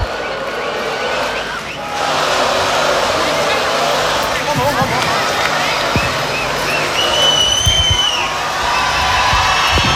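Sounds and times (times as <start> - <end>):
concert crowd cheering and applauding: 0.0 - 9.9
whistles: 1.0 - 1.9, 5.6 - 9.9.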